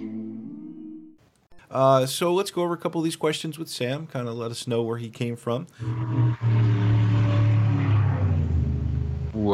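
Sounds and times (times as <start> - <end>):
speech: 1.7 - 7.0
cars drag racing, deep engine roar: 5.8 - 9.4.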